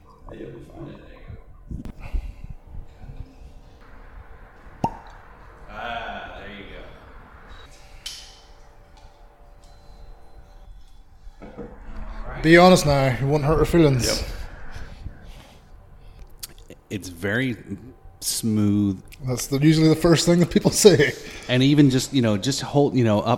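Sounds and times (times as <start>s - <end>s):
speech: 0.3s - 1.9s, 12.4s - 14.3s, 17.2s - 23.3s
bottle of rum cracked open with a pop: 4.8s - 5.1s.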